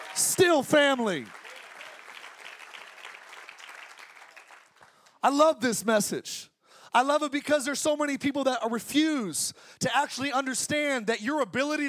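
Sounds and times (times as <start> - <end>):
audience applause: 0.0 - 5.1
speech: 0.2 - 1.4, 5.2 - 11.8.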